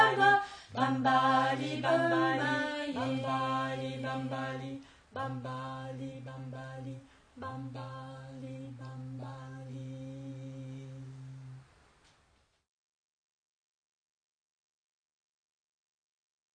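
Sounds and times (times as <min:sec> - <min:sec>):
chant: 0:00.0 - 0:11.6.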